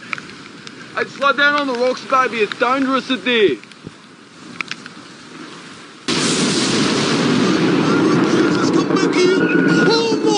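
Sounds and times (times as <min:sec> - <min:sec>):
faint clicks: 0:00.0 - 0:00.8, 0:01.5 - 0:03.0, 0:03.6 - 0:05.0
speech: 0:01.0 - 0:04.0
lightning strike thunderclap: 0:06.1 - 0:10.3.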